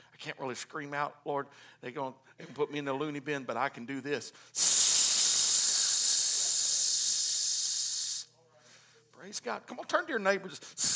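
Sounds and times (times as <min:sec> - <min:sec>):
speech: 0:00.2 - 0:04.8, 0:09.2 - 0:10.9
voice imitating an aerosol spray hiss: 0:04.6 - 0:08.3, 0:10.8 - 0:10.9.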